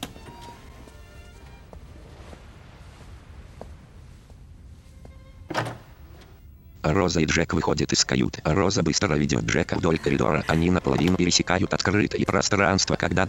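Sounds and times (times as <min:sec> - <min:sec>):
door closing: 0:00.0 - 0:00.8, 0:05.5 - 0:06.5
speech: 0:06.8 - 0:13.2
laughter: 0:09.4 - 0:13.2.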